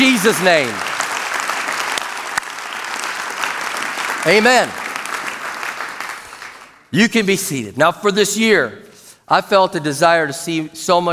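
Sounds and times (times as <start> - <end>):
speech: 0.0 - 0.9, 4.2 - 4.8, 6.9 - 11.1
audience applauding: 0.0 - 6.9.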